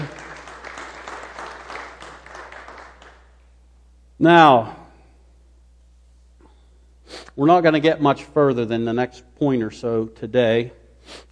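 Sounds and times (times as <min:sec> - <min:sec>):
audience applause: 0:00.0 - 0:03.4
speech: 0:04.2 - 0:04.8, 0:07.4 - 0:11.3.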